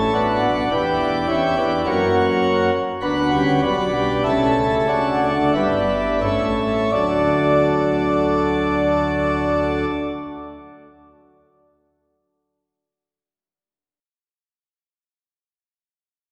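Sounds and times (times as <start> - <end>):
organ playing a hymn: 0.0 - 11.6.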